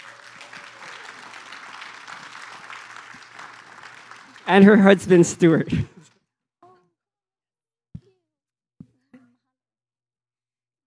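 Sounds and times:
laughter: 0.0s - 6.0s
congregation applauding at a church service: 0.0s - 6.1s
speech: 4.5s - 5.9s.

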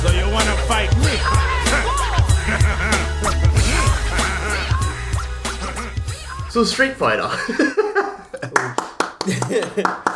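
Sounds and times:
laughter: 0.2s - 6.3s, 7.2s - 10.1s
speech: 6.6s - 8.1s, 9.5s - 10.1s
golf clap: 8.3s - 10.1s.

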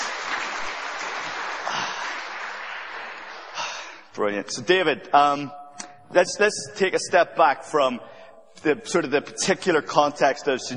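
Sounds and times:
crowd clapping: 0.0s - 4.1s
speech: 4.2s - 10.7s.

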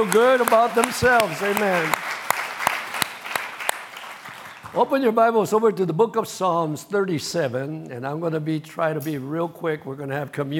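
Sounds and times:
speech: 0.0s - 2.1s, 4.7s - 10.5s
audience applause: 0.0s - 4.8s
sharp loud claps: 0.0s - 4.9s.

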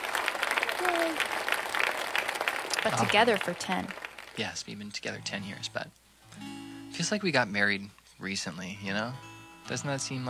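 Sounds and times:
applause: 0.0s - 4.6s
speech: 2.8s - 10.2s.

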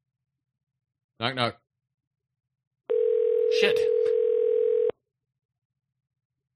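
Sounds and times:
speech: 1.2s - 1.6s, 3.6s - 4.0s
telephone ring tone on an unanswered call: 2.9s - 4.9s.

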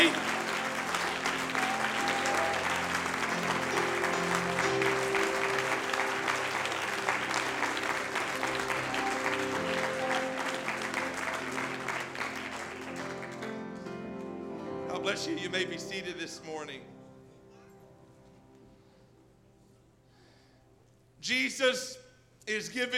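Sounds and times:
large crowd clapping loudly: 0.0s - 14.4s
speech: 15.2s - 17.0s, 21.3s - 22.9s.

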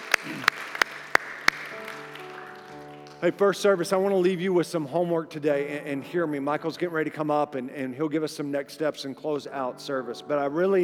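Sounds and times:
audience applause: 0.0s - 3.3s
speech: 3.2s - 10.8s.

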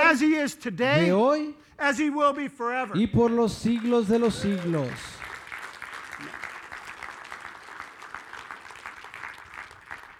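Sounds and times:
speech: 0.1s - 5.3s
audience clapping: 3.2s - 10.1s.

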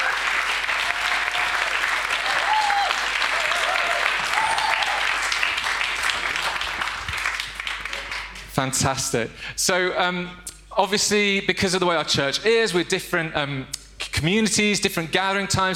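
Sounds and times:
church audience applause welcoming three panel speakers onto the stage: 0.0s - 8.5s
speech: 8.6s - 15.7s.

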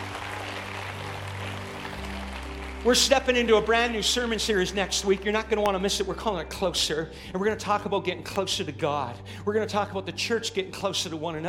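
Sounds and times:
audience clapping: 0.0s - 5.7s
speech: 2.8s - 11.4s.

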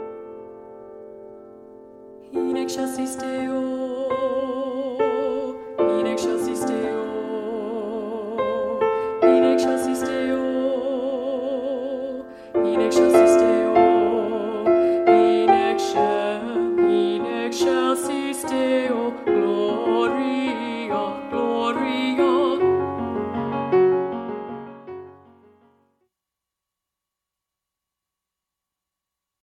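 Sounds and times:
alto singing: 2.2s - 25.4s.

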